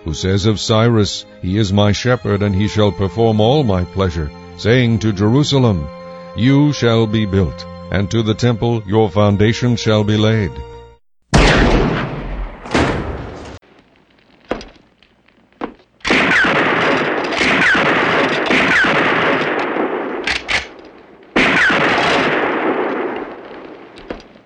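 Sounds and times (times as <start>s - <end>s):
speech: 0.1s - 10.7s
Winchester rifle gunshots: 11.4s - 13.6s, 15.6s - 24.4s.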